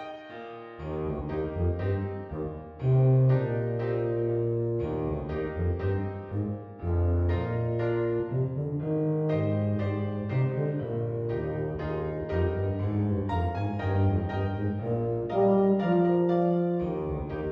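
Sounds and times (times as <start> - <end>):
tuba: 0.8 - 17.5.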